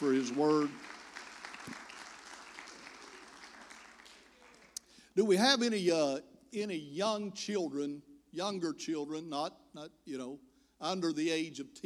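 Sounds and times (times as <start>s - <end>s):
speech: 0.0s - 0.9s, 5.2s - 11.8s
audience applauding: 0.0s - 4.8s.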